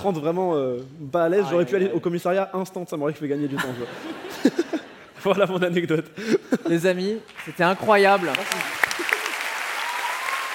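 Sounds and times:
speech: 0.0s - 8.8s
laughter: 3.2s - 7.2s, 8.8s - 9.6s
audience applause: 7.3s - 10.5s.

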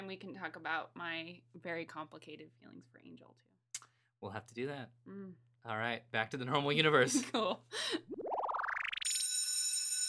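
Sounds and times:
speech: 0.1s - 8.2s
bell signalling time is almost up: 9.1s - 10.0s.

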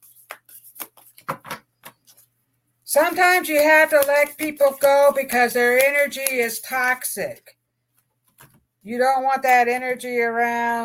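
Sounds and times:
oracle cards flicking and tapping as one is drawn from the deck: 0.0s - 2.3s, 3.1s - 6.9s, 8.2s - 8.6s
speech: 2.9s - 7.6s, 8.8s - 10.8s.

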